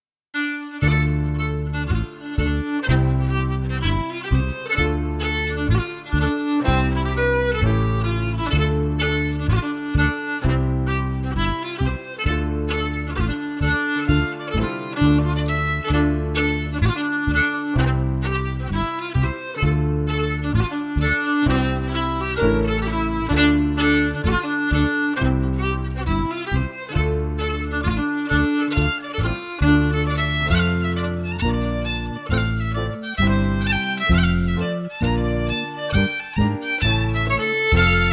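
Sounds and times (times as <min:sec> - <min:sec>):
fiddle: 0:00.4 - 0:38.1
piano: 0:00.4 - 0:38.1.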